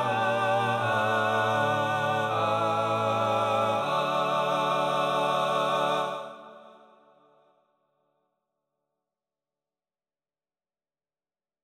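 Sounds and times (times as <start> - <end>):
male choir singing in TTBB voicing: 0.0 - 7.1.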